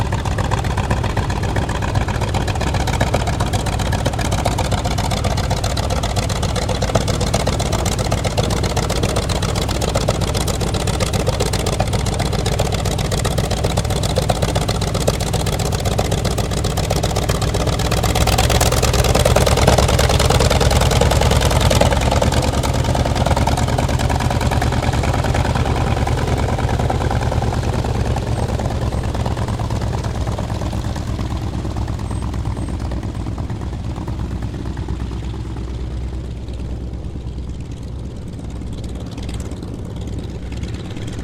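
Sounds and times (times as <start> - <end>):
Trojan aircraft of mixed squadrons taxiing: 0.0 - 41.2.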